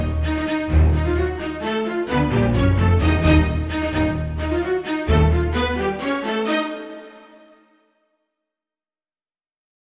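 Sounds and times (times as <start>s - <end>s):
string instruments playing: 0.0s - 7.8s.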